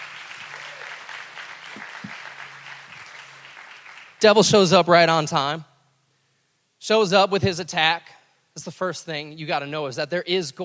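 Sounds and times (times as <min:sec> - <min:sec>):
audience applause: 0:00.0 - 0:04.3
speech: 0:04.2 - 0:05.7, 0:06.8 - 0:10.6.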